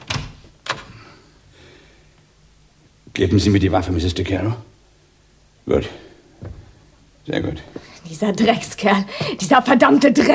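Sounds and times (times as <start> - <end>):
door being opened: 0.0 - 1.0
speech: 3.2 - 4.7, 5.7 - 6.0, 7.3 - 10.3.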